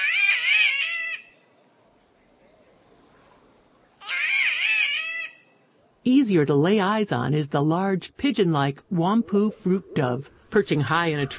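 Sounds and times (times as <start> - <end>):
spotted catbird wailing calls: 0.0 - 1.4, 4.0 - 5.5
insects buzzing: 0.0 - 11.3
speech: 6.1 - 11.3.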